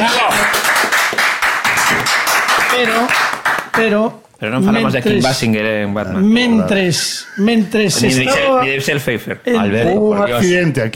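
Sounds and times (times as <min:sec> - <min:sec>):
audience applause: 0:00.0 - 0:03.8
speech: 0:03.8 - 0:10.9.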